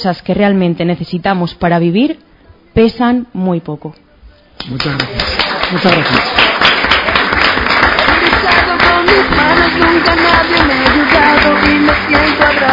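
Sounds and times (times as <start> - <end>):
speech: 0.0 - 4.0, 4.6 - 6.5, 9.2 - 12.7
audience applause: 4.7 - 12.7.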